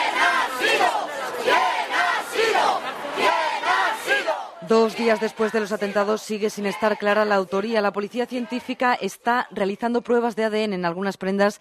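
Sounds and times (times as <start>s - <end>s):
protest crowd chanting condemnation: 0.0s - 9.0s
speech: 4.7s - 11.6s.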